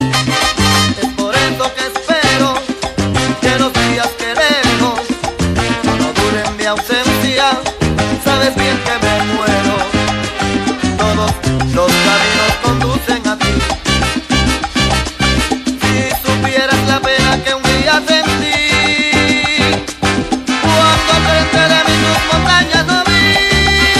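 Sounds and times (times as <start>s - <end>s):
Colombian music mix: 0.0s - 23.9s.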